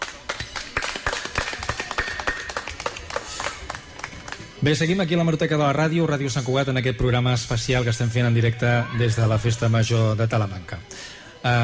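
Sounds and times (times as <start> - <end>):
audience applause: 0.0 - 4.6
speech: 4.6 - 11.6.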